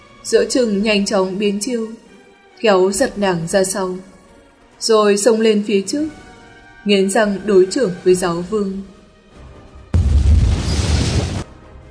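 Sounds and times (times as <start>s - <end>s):
speech: 0.2s - 2.0s, 2.6s - 4.1s, 4.8s - 6.2s, 6.8s - 8.9s
thunderous explosion boom effect: 10.0s - 11.5s.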